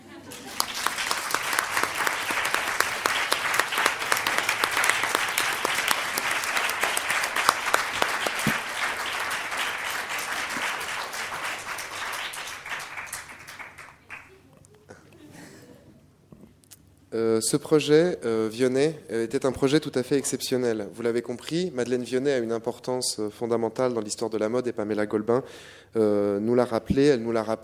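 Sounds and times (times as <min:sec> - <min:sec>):
audience applause: 0:00.0 - 0:14.4
speech: 0:17.4 - 0:27.6.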